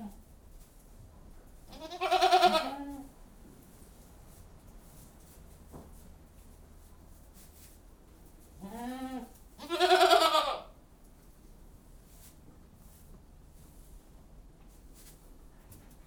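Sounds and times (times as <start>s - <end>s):
goats bleating in a goat house: 1.7s - 2.9s, 8.6s - 10.7s.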